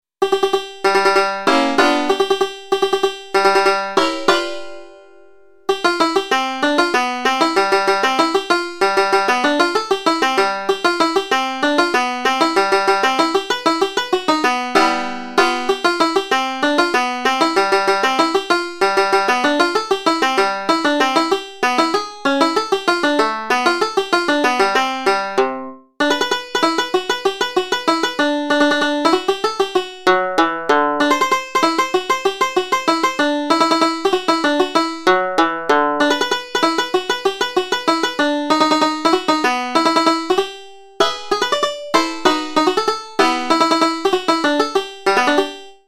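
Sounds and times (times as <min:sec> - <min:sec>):
polka: 0:00.2 - 0:45.8.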